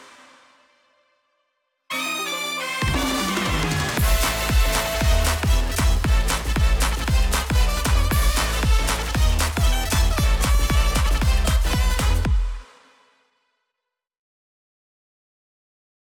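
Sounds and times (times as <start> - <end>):
instrumental music: 1.9 - 12.6.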